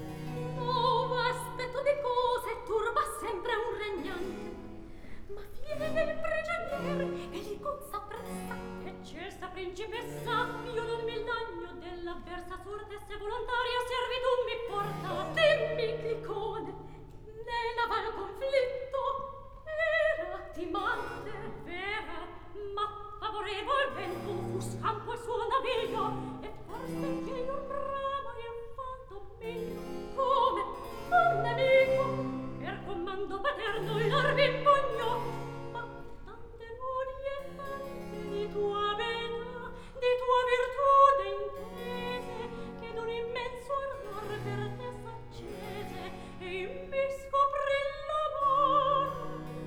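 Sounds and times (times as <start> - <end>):
recitative singing: 0.0 - 49.6.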